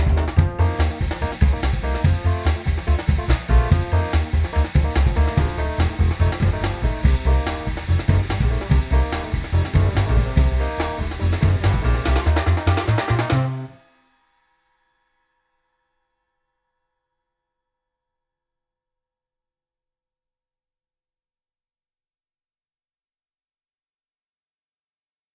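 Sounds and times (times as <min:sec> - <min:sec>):
high tuned drum played with rod in a beefy room: 0:00.0 - 0:13.8.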